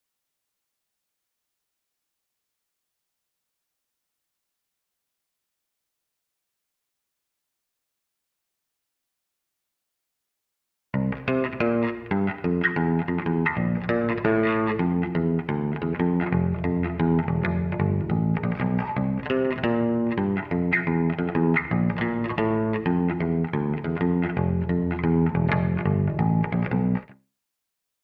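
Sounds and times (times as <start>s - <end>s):
bass with chorus effect: 11.0s - 27.2s.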